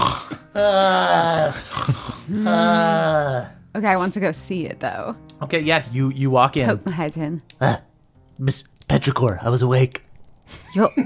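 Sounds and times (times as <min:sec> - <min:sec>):
voice imitating loud snoring: 0:00.0 - 0:03.5
speech: 0:00.6 - 0:02.8, 0:03.8 - 0:11.0.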